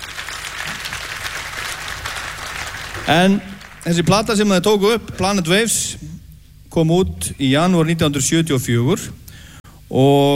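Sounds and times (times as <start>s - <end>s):
audience applause at a tribute concert: 0.0s - 4.7s
speech: 3.1s - 6.1s, 6.8s - 9.2s, 9.9s - 10.3s.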